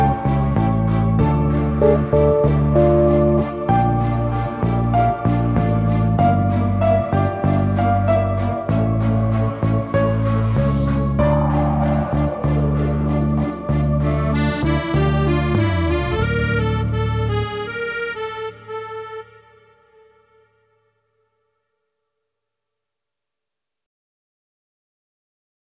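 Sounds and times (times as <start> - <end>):
instrumental music: 0.0 - 20.6.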